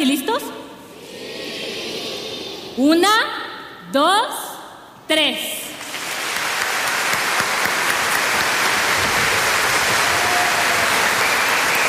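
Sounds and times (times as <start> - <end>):
speech: 2.8 - 4.4, 5.1 - 5.6
audience applause: 5.8 - 11.8.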